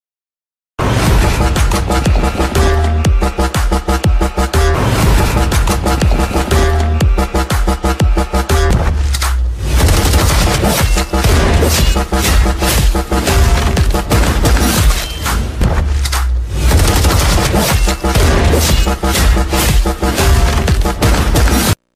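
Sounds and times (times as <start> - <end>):
animal movie fight scene background music: 0.8 - 21.9.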